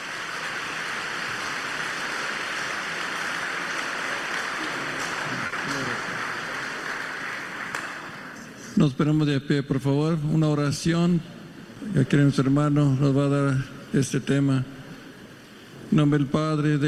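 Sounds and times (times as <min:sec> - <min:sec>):
audience applause: 0:00.0 - 0:08.4
speech: 0:08.8 - 0:14.7, 0:15.9 - 0:16.8.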